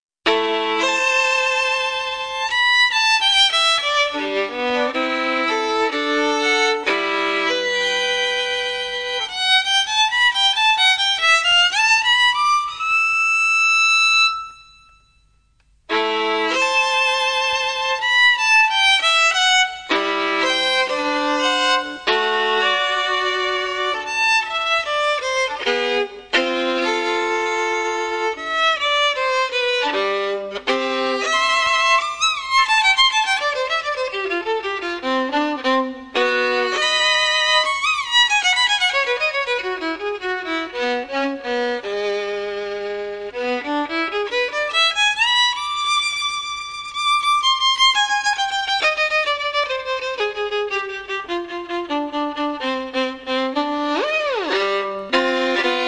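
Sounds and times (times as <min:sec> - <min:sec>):
folk music: 0:00.3 - 0:15.0, 0:15.6 - 0:55.8.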